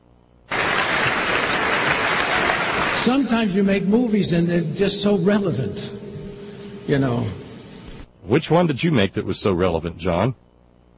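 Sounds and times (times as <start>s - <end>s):
thunderous applause: 0.5s - 8.0s
speech: 3.0s - 6.0s, 6.9s - 7.4s, 8.2s - 10.4s.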